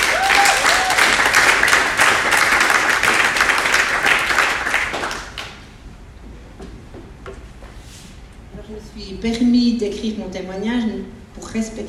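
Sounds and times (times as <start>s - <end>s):
audience applause: 0.0s - 5.6s
speech: 9.2s - 11.8s.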